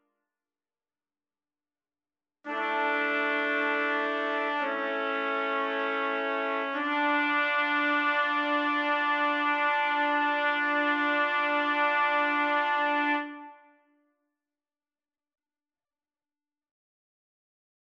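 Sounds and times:
trumpet quartet: 2.5s - 13.6s.

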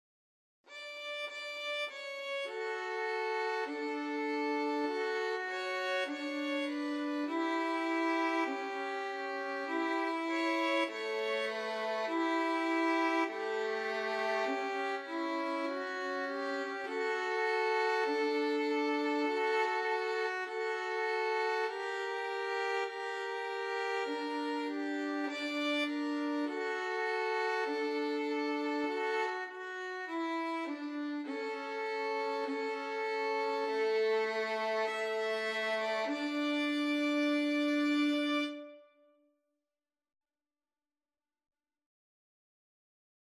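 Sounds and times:
violins playing: 0.7s - 38.8s.

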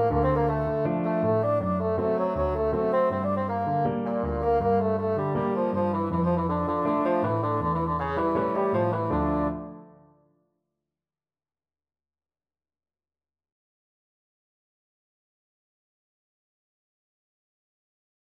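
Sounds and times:
bassoon playing a tango: 0.0s - 10.1s.

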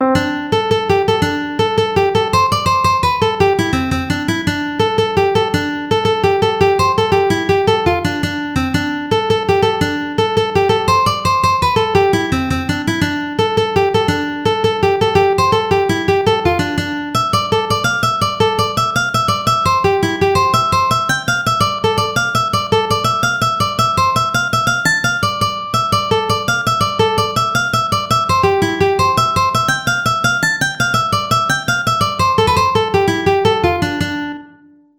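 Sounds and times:
ukulele: 0.0s - 34.7s.

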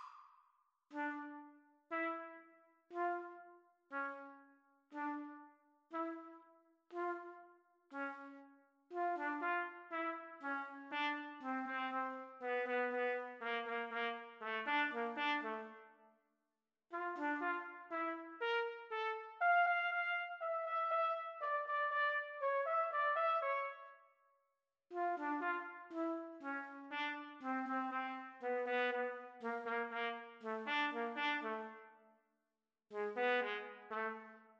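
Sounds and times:
trumpet and trombone duet: 0.9s - 4.3s, 4.9s - 5.4s, 5.9s - 6.3s, 8.9s - 15.9s, 16.9s - 23.9s, 24.9s - 31.9s, 32.9s - 34.5s.

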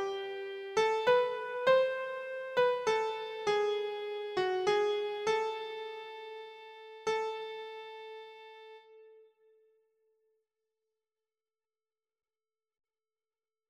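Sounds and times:
keyboard melody: 0.0s - 9.2s.

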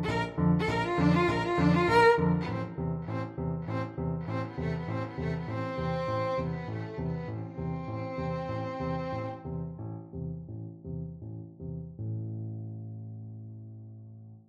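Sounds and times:
violin duet: 0.0s - 9.4s.

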